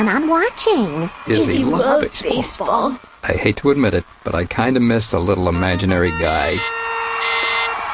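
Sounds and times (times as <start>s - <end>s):
speech: 0.0s - 7.3s
doorbell ringing: 5.6s - 7.8s.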